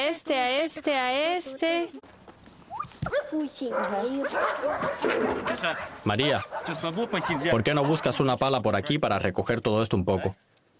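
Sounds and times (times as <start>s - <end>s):
speech: 0.1s - 10.5s
dogs barking: 3.1s - 8.5s.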